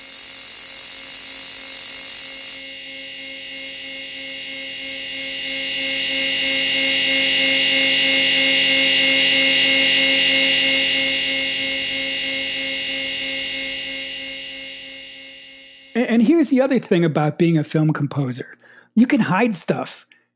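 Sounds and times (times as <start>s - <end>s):
electric chair buzz: 0.0s - 16.2s
speech: 16.6s - 20.2s.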